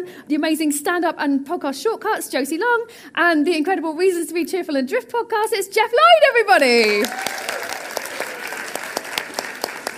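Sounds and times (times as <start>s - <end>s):
speech: 0.0s - 7.6s
audience applause: 6.8s - 9.9s.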